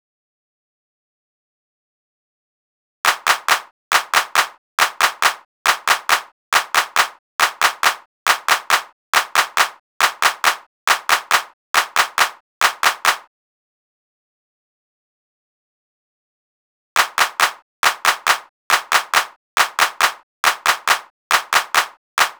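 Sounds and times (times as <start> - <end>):
hand clap: 3.1 - 13.3, 17.0 - 22.3.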